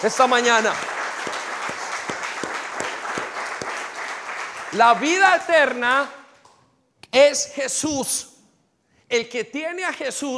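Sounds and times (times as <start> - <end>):
speech: 0.0 - 0.9, 4.7 - 6.2, 7.1 - 8.3, 9.1 - 10.3
audience applause: 0.0 - 5.8.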